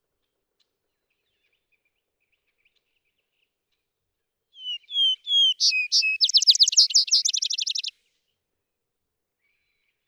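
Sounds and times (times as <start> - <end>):
Vesper sparrow song with whistles and descending trill: 4.6 - 7.9.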